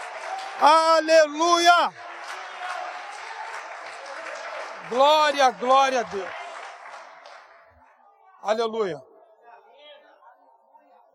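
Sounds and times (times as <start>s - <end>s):
audience applause: 0.0s - 7.9s
speech: 0.6s - 2.1s, 4.9s - 6.4s, 8.4s - 9.1s.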